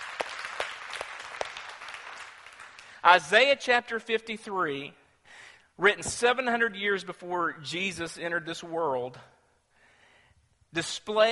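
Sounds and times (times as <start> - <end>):
audience clapping: 0.0 - 3.2
speech: 3.0 - 5.0, 5.8 - 9.3, 10.7 - 11.3.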